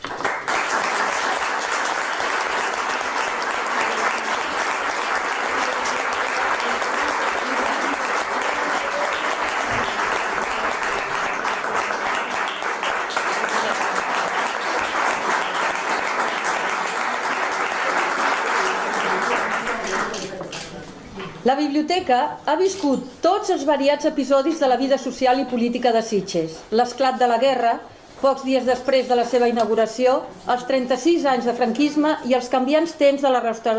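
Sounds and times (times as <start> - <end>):
audience applause: 0.0 - 20.4
speech: 21.8 - 33.7.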